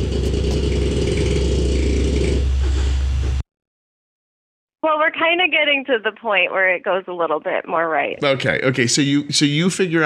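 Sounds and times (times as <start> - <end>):
small dog snoring: 0.0 - 2.5
speech: 4.8 - 10.0.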